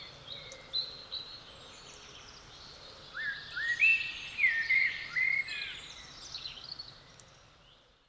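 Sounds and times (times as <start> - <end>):
common blackbird song: 0.0 - 8.0
faint birds in background: 0.0 - 8.0.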